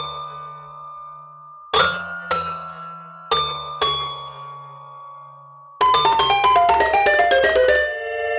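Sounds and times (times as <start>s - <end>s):
dry toy piano: 1.7s - 4.2s, 5.8s - 8.2s.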